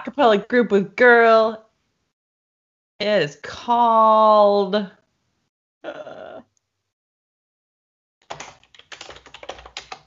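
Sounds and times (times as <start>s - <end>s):
speech: 0.2s - 1.6s, 3.0s - 5.0s
typing on a computer keyboard: 8.2s - 10.0s.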